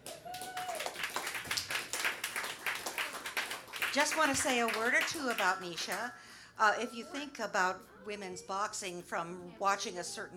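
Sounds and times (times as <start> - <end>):
audience applause: 0.0 - 5.1
speech: 3.9 - 10.3.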